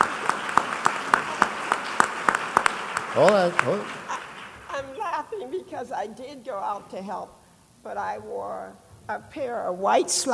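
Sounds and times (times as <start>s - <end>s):
steady evenly spaced hand claps: 0.0s - 5.0s
speech: 3.2s - 4.0s, 5.6s - 10.3s.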